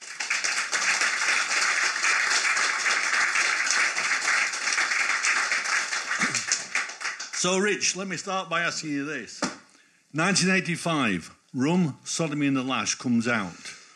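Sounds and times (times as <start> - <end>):
audience applause: 0.0 - 7.7
speech: 7.4 - 9.5, 10.1 - 13.7.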